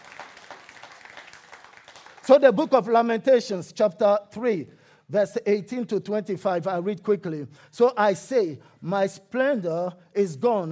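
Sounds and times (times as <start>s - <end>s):
crowd clapping: 0.0s - 2.6s
speech: 2.3s - 10.7s.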